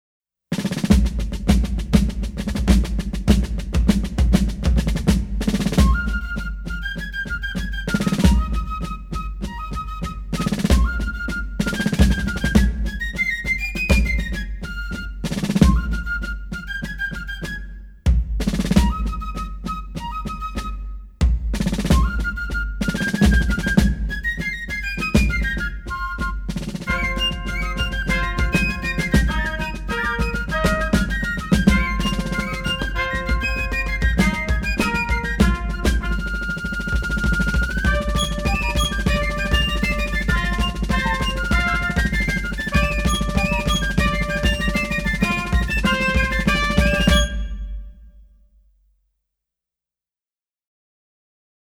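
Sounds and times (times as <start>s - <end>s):
fife and drum corps playing: 0.6s - 47.8s.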